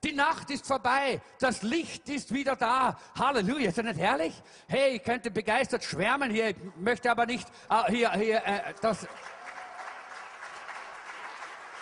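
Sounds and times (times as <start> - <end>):
speech: 0.0 - 9.3
audience applause: 8.6 - 11.8.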